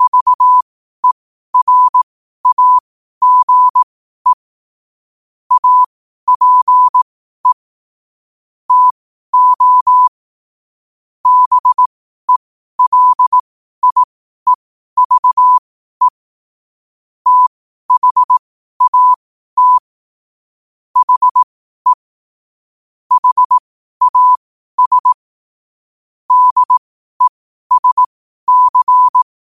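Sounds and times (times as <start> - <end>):
morse code at 5 wpm: 0.0 - 4.4, 5.5 - 7.6, 8.7 - 10.1, 11.2 - 14.1, 15.0 - 16.1, 17.3 - 19.9, 21.0 - 22.0, 23.1 - 25.2, 26.3 - 29.3.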